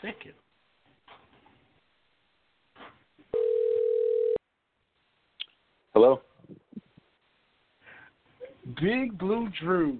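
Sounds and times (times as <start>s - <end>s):
speech: 0.0s - 0.5s, 6.0s - 6.3s, 8.8s - 9.9s
telephone call ringing out: 3.3s - 4.4s.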